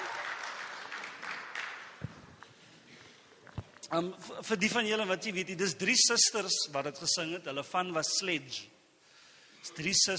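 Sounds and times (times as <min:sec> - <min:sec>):
audience applause: 0:00.0 - 0:02.1
speech: 0:03.9 - 0:08.7, 0:09.6 - 0:10.1.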